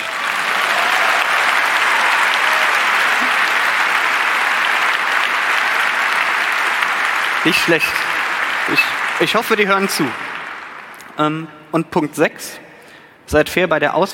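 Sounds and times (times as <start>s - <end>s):
crowd applause: 0.0s - 11.2s
speech: 7.4s - 8.1s, 8.7s - 10.3s, 11.2s - 12.6s, 13.3s - 14.1s.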